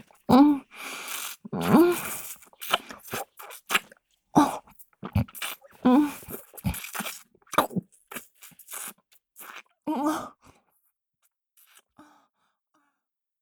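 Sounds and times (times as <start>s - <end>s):
oral sex sounds: 0.1s - 10.4s.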